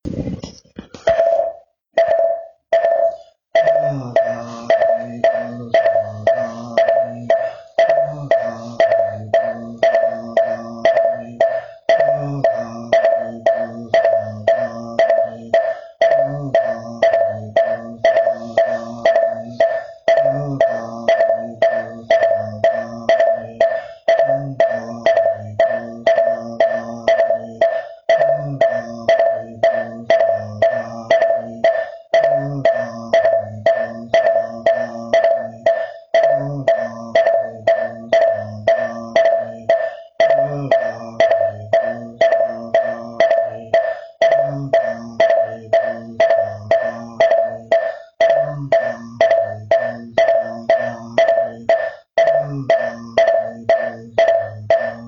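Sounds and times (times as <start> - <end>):
moktak wooden fish percussion: 0.0 - 55.0.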